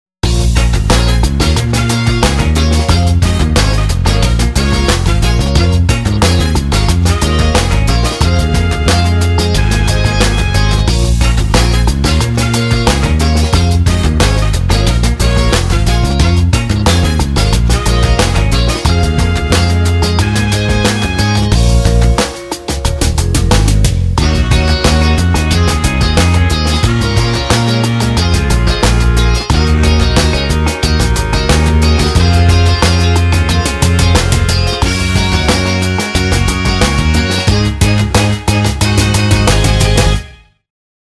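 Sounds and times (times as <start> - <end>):
afro funk music: 0.2 - 40.4.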